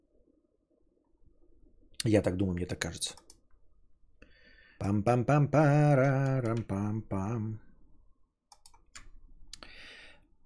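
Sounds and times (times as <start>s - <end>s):
speech: 2.0s - 3.3s, 4.8s - 7.6s
computer mouse clicks: 3.1s - 3.5s, 8.5s - 9.7s.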